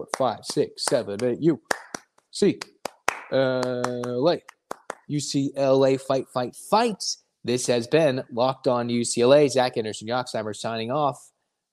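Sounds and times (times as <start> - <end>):
speech: 0.0 - 2.7, 3.3 - 11.3
rhythmic hand clapping: 0.0 - 5.2.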